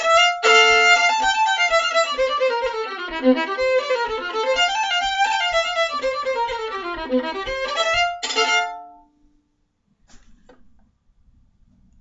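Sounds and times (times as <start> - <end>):
Japanese reel: 0.0 - 9.0.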